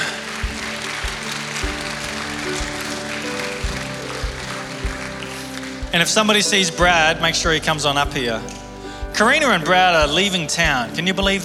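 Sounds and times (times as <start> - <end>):
audience clapping: 0.0 - 8.6
speech: 5.9 - 8.6, 9.2 - 11.4.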